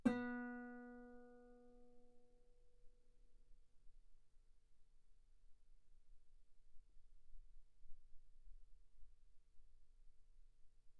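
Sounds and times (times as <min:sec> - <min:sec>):
guitar note B3: 0:00.0 - 0:01.2.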